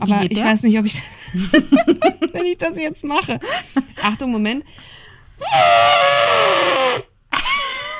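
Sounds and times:
speech: 0.0s - 7.1s
person imitating an elephant's trumpet: 5.4s - 7.9s.

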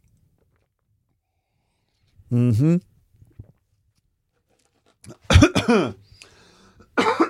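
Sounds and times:
speech: 2.3s - 2.9s
person coughing after tea went down the wrong way: 5.1s - 6.0s, 7.0s - 7.2s.

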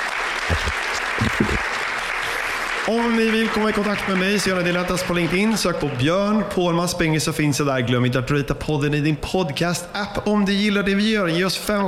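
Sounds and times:
audience applause for podcast guests: 0.0s - 6.4s
speech: 2.9s - 11.8s.

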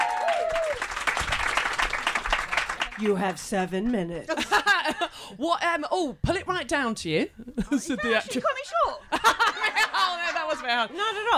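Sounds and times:
high whoop or cheer: 0.0s - 0.9s
crowd applause: 0.0s - 3.4s
speech: 3.0s - 4.7s, 5.3s - 9.1s, 10.6s - 11.3s
laughter: 4.3s - 5.2s, 7.4s - 11.3s.

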